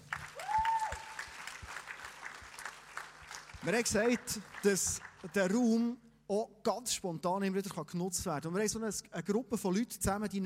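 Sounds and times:
audience applause: 0:00.0 - 0:05.6
speech: 0:03.6 - 0:10.4.

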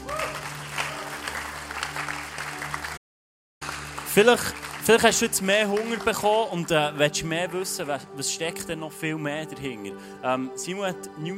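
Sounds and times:
audience applause: 0:00.0 - 0:03.0, 0:03.6 - 0:07.2
speech: 0:04.2 - 0:11.3.

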